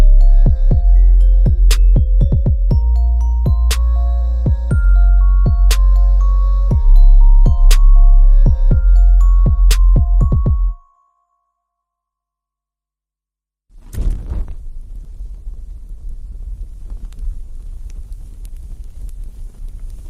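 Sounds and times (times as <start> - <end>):
deep bass: 0.0 - 10.8.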